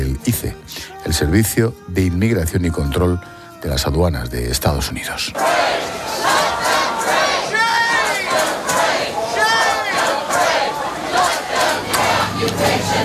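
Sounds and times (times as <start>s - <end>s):
speech: 0.4s - 6.3s
protest crowd chanting: 5.3s - 13.0s.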